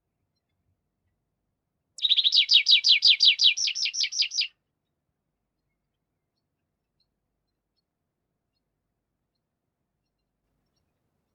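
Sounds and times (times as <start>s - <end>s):
Tree Pipit song: 2.0s - 5.0s, 5.6s - 11.3s.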